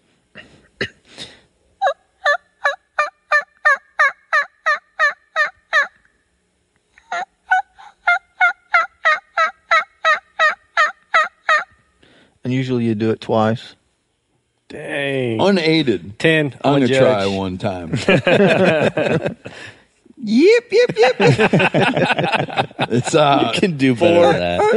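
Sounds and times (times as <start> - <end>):
imitation of hen turkey yelp calls: 1.8 - 6.0, 7.0 - 11.8
speech: 12.5 - 13.8, 15.4 - 24.7
laughter: 17.2 - 19.6, 20.5 - 24.7.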